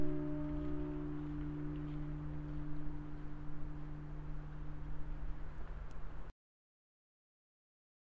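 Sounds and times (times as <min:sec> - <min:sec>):
glockenspiel: 0:00.0 - 0:05.5.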